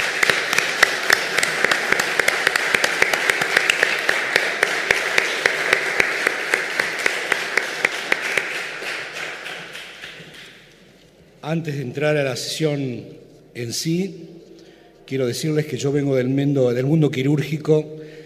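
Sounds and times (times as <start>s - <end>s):
audience applause: 0.0s - 10.6s
speech: 11.5s - 14.4s, 15.1s - 18.1s.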